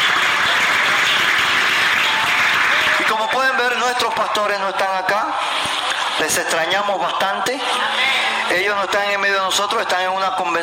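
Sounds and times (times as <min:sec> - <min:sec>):
audience applauding: 0:00.0 - 0:06.8
speech: 0:03.9 - 0:10.6.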